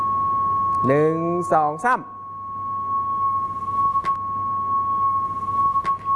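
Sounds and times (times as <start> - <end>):
speech: 0.8 - 2.1
high-pitched beep tone from moving loudspeaker: 2.4 - 6.1.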